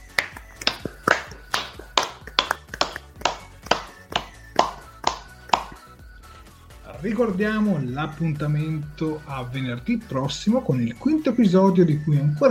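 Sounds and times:
person clapping: 0.0s - 5.9s
speech: 7.0s - 12.4s.

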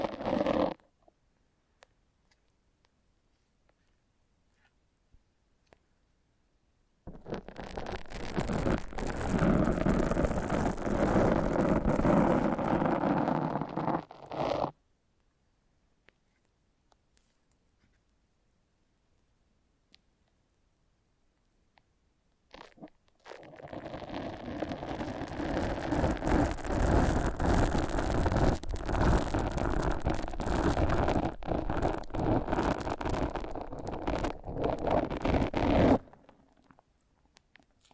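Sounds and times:
foam rubbing and squeaking: 0.0s - 0.8s, 7.1s - 14.8s, 22.5s - 36.2s.

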